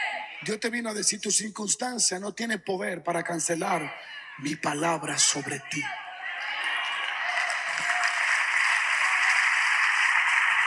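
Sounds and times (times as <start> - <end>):
speech: 0.5 - 6.6
audience applause: 6.4 - 10.6.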